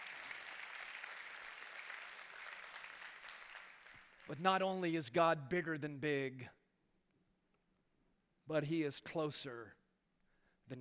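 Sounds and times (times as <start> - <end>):
audience applause: 0.0 - 4.3
speech: 4.3 - 6.6, 8.5 - 9.8.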